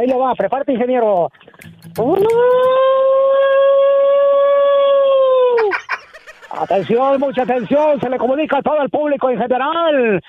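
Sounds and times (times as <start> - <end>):
speech: 0.0 - 3.0, 6.6 - 10.2
voice imitating an ambulance siren: 2.0 - 5.7
laughter: 5.4 - 8.7.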